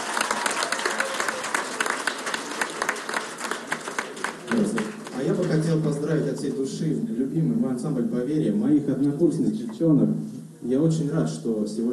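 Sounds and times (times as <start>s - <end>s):
audience applause: 0.0s - 5.8s
speech: 4.5s - 11.9s.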